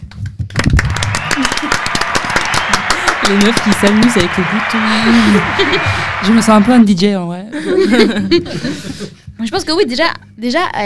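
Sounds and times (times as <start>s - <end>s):
applause: 0.5s - 6.9s
laughter: 1.2s - 6.8s, 7.5s - 9.2s
speech: 3.3s - 10.8s.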